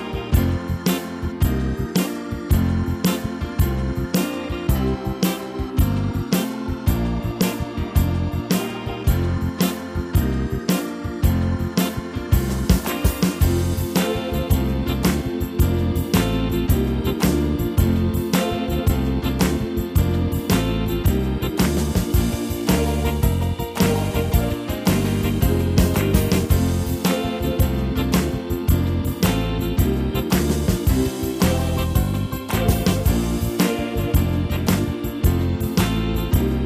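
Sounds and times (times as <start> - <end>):
gospel swing music: 0.0 - 36.6.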